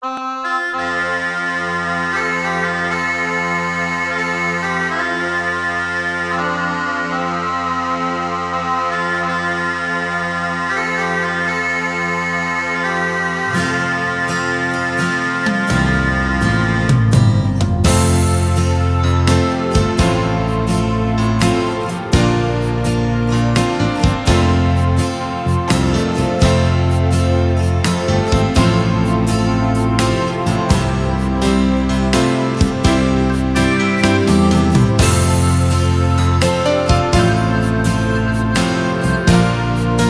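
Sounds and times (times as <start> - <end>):
recorder: 0.0 - 40.0.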